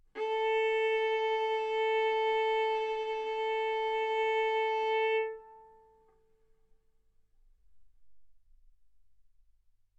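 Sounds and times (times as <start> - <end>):
violin arco on A string: 0.0 - 6.1.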